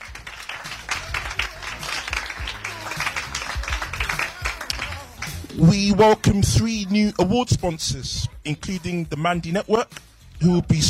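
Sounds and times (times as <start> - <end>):
audience applause: 0.0 - 5.6
speech: 5.6 - 10.8.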